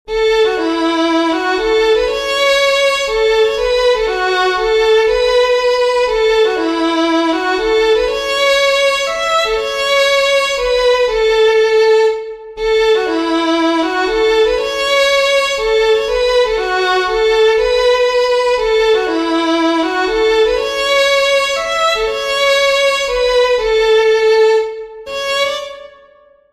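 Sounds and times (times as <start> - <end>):
fiddlers playing a waltz: 0.3 - 25.9.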